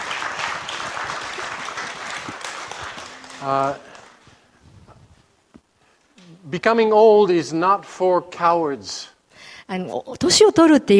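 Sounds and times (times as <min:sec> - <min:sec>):
audience applause: 0:00.0 - 0:04.5
speech: 0:03.4 - 0:03.9, 0:06.5 - 0:09.1, 0:09.7 - 0:10.9.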